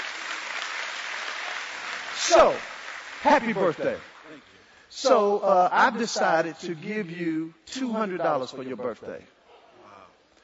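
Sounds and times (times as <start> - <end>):
audience clapping for a contestant: 0.0 - 5.2
speech: 2.3 - 9.4.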